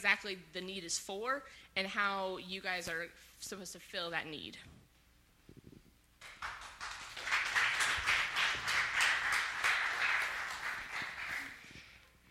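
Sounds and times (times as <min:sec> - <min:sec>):
speech: 0:00.0 - 0:04.8
audience clapping: 0:06.2 - 0:11.7.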